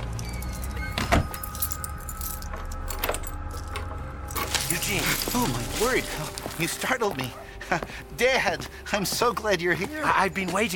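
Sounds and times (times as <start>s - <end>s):
keys jangling while locking up a building at night: 0.1s - 6.7s
speech: 5.4s - 10.7s.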